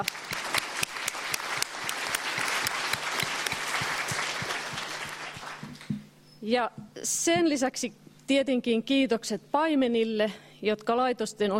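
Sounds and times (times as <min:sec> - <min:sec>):
speech: 0:00.0 - 0:00.2, 0:06.5 - 0:11.5
audience applause: 0:00.0 - 0:06.0.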